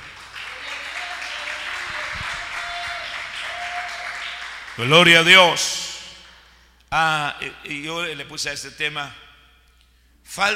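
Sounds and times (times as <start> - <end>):
crowd applauding: 0.0 - 5.4
faint voices or cheers: 0.5 - 4.3
speech: 4.8 - 5.8, 6.9 - 9.2, 10.3 - 10.5.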